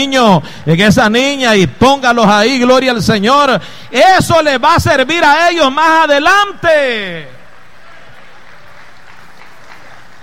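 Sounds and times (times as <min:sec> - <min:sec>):
speech: 0:00.0 - 0:07.4
audience applause: 0:07.7 - 0:10.2.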